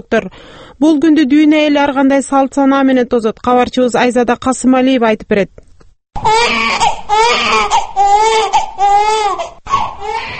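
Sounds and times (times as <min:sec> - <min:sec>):
speech: 0:00.0 - 0:10.3
newborn baby crying: 0:06.2 - 0:10.3.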